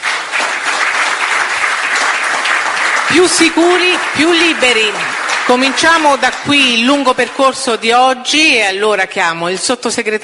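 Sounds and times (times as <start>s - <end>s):
crowd applause: 0.0s - 7.4s
speech: 3.1s - 10.2s.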